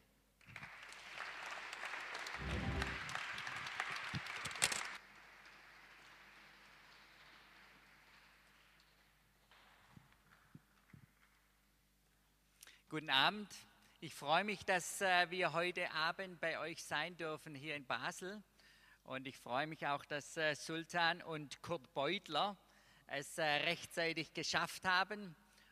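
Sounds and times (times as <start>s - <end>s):
audience applause: 0.5s - 8.2s
speech: 12.9s - 18.5s, 19.1s - 25.4s.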